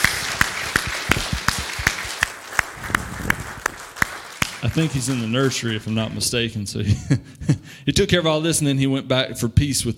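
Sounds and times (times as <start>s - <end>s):
audience scattered clapping: 0.0s - 6.4s
speech: 4.8s - 9.9s.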